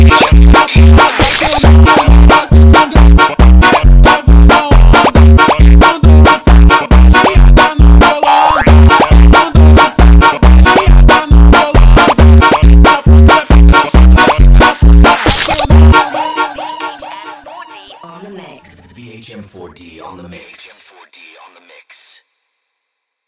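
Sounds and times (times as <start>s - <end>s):
sped up funk music: 0.0s - 17.8s.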